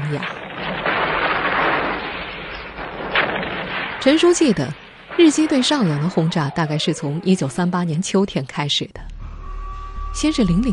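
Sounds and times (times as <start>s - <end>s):
rumbling artillery gunfire: 0.0s - 6.3s
speech: 0.1s - 0.4s, 4.0s - 9.1s, 10.2s - 10.7s.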